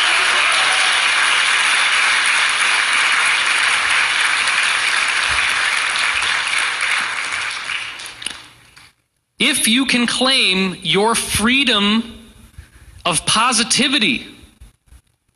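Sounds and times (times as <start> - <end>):
crowd applause: 0.0 - 8.7
speech: 9.5 - 12.2, 13.1 - 14.3.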